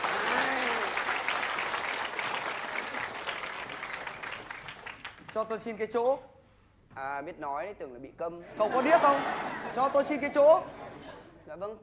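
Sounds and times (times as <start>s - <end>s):
audience applause: 0.0s - 5.3s
speech: 5.4s - 6.4s, 7.0s - 10.8s, 11.6s - 11.8s
laughter: 8.5s - 11.4s.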